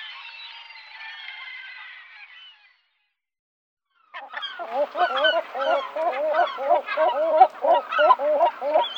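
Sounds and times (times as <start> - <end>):
European herring gull calling: 4.2 - 8.9.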